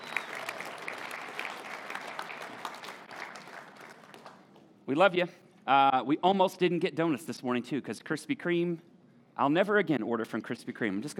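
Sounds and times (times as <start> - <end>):
audience round of applause: 0.0 - 4.5
speech: 4.9 - 11.1.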